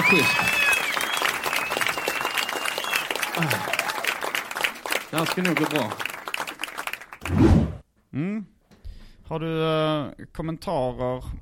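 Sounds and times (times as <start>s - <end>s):
small round of applause: 0.0s - 7.3s
speech: 0.1s - 0.5s, 3.4s - 3.8s, 5.1s - 6.1s, 8.2s - 8.5s, 9.3s - 11.3s.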